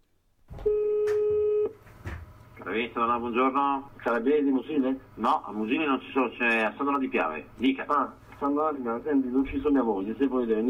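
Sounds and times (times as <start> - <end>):
telephone line tone at start of call: 0.6 - 1.8
speech: 2.7 - 10.6.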